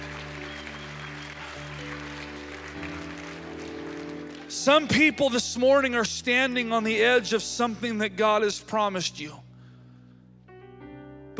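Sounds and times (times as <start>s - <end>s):
audience applause: 0.0s - 5.1s
speech: 4.6s - 9.4s.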